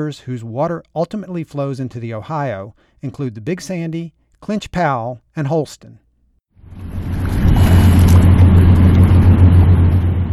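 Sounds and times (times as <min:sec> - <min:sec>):
speech: 0:00.0 - 0:06.0
Ohio River barge in Pittsburgh: 0:06.6 - 0:10.3.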